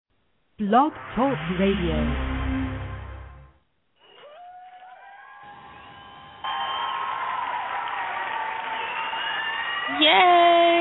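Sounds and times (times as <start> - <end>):
speech: 0.6 - 2.3
low rumble: 0.6 - 3.6
cheers and high whoops: 4.2 - 10.7
crowd applause: 4.2 - 10.7.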